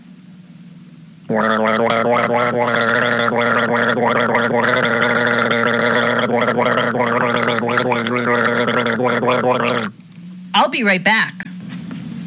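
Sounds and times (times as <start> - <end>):
speech: 1.3 - 10.0, 10.6 - 11.4
person guzzling a drink: 1.3 - 10.2.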